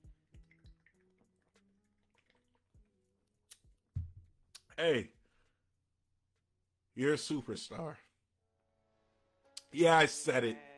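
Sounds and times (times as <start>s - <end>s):
sipping a drink: 0.4s - 2.9s
speech: 4.8s - 5.2s, 7.0s - 8.0s, 9.7s - 10.7s.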